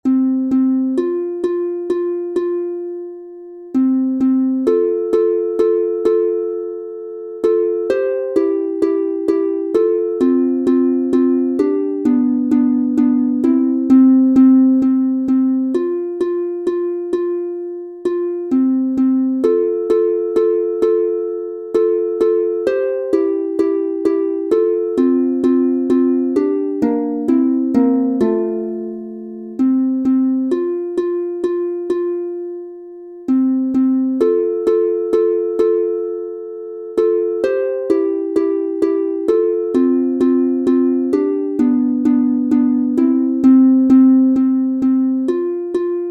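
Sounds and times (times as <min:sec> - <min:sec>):
two-voice instrumental harp in F major: 0:00.0 - 0:46.0.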